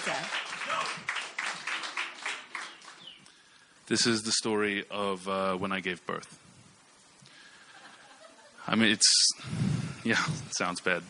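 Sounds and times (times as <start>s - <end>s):
small group clapping: 0.0s - 3.2s
speech: 3.9s - 6.4s, 8.7s - 11.0s.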